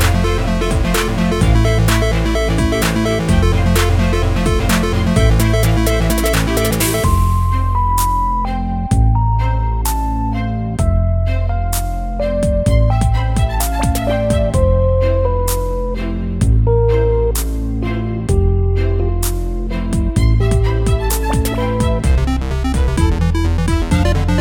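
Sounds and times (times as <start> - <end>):
stylish and cool synthetic music: 0.0 - 24.4.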